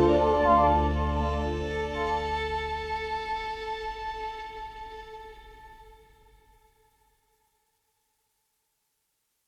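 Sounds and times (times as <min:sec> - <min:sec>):
ARP synthesizer violin: 0:00.0 - 0:06.6.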